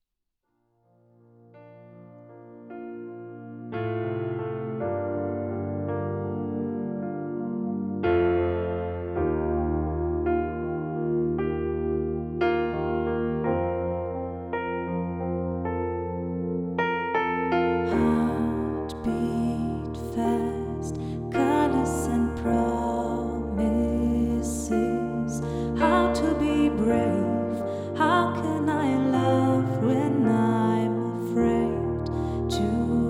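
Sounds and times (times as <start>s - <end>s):
piano: 0.6s - 33.0s.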